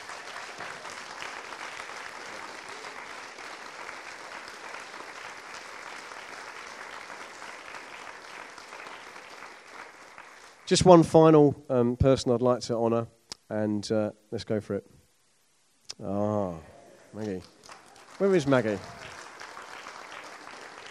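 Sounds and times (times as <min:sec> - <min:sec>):
crowd applause: 0:00.0 - 0:11.0, 0:17.1 - 0:20.8
speech: 0:10.7 - 0:15.0, 0:16.0 - 0:17.6, 0:18.2 - 0:19.0.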